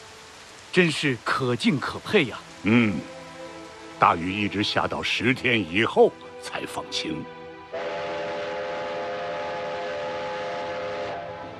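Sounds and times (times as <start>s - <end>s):
speech: 0.8s - 3.1s, 4.0s - 7.8s
train rumbling along railway tracks: 7.7s - 11.5s.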